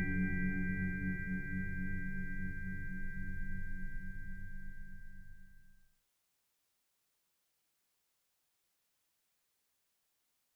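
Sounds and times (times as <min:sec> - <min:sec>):
original tubular chime: 0:00.0 - 0:05.8.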